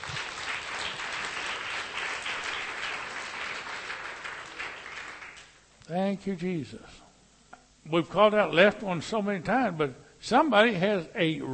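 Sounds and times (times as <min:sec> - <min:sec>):
church congregation applause during a worship service: 0:00.0 - 0:05.6
speech: 0:05.9 - 0:07.0, 0:07.9 - 0:11.5.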